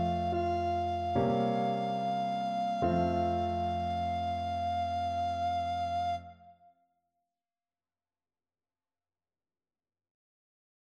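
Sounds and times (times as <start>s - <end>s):
recorder playing: 0.0s - 6.4s.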